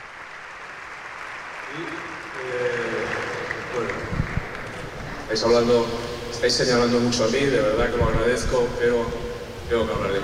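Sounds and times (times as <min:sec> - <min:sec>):
crowd applause for players: 0:00.0 - 0:06.0
speech: 0:01.7 - 0:02.8, 0:05.3 - 0:10.2.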